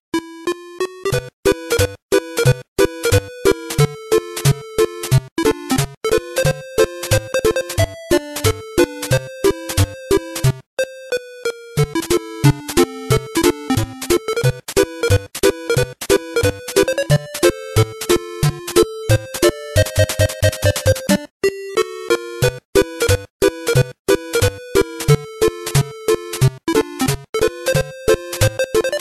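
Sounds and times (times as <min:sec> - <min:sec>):
8-bit game music: 0:00.1 - 0:28.9.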